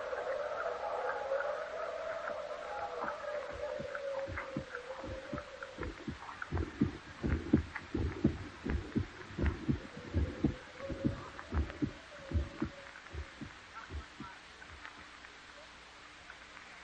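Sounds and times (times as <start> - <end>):
low drone: 0.0 - 15.0
heartbeat sound effect from a radio drama of The Tell-Tale Heart: 3.5 - 14.9.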